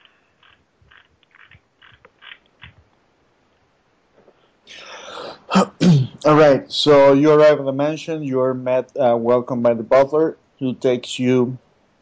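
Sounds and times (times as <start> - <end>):
cough: 5.5 - 6.2
speech: 5.5 - 11.6.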